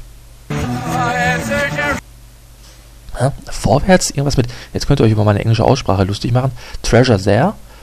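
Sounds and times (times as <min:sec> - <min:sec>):
rock song passage played backwards: 0:00.5 - 0:02.0
speech: 0:03.2 - 0:07.6.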